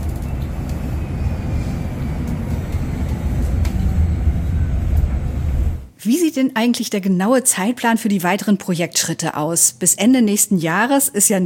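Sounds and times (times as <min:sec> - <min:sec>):
quiet electric city bus driving: 0:00.0 - 0:05.9
speech: 0:06.1 - 0:11.4.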